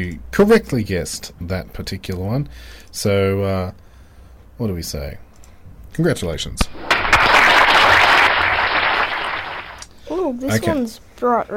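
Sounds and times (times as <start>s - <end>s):
speech: 0.0s - 3.8s, 4.6s - 5.2s, 5.9s - 6.9s, 10.3s - 11.5s
applause sound effect for a correct Tic Tac flavour guess: 6.7s - 9.9s.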